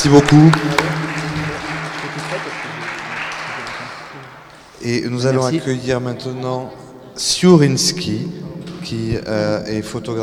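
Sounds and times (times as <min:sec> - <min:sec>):
speech: 0:00.0 - 0:01.0, 0:04.8 - 0:10.2
audience applauding the speakers at a talk: 0:00.0 - 0:04.7.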